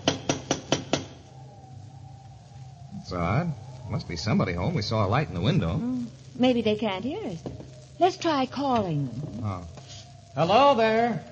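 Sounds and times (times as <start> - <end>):
knocking on a door: 0.0 - 1.1, 7.4 - 7.8
speech: 3.1 - 9.8, 10.4 - 11.3.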